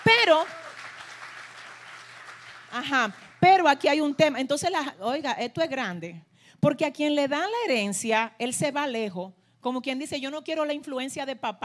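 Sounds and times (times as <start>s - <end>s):
audience applause: 0.0s - 3.4s
speech: 0.3s - 0.6s, 2.7s - 11.6s.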